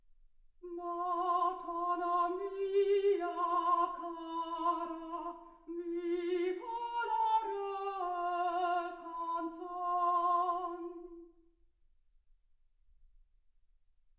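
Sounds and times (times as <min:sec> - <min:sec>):
soprano singing: 0:00.6 - 0:11.4.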